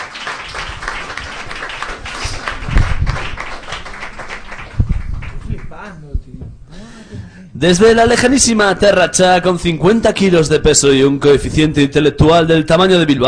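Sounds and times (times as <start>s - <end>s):
applause: 0.0s - 5.8s
speech: 7.6s - 13.2s.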